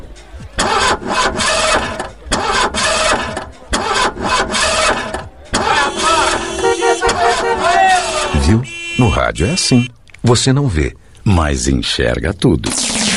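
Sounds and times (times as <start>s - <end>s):
nearly 300-horsepower sports car engine starting: 0.5s - 7.9s
speech: 9.0s - 13.0s.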